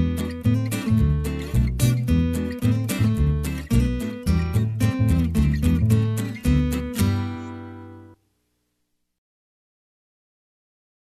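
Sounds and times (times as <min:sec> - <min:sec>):
sweet beat: 0:00.0 - 0:07.4.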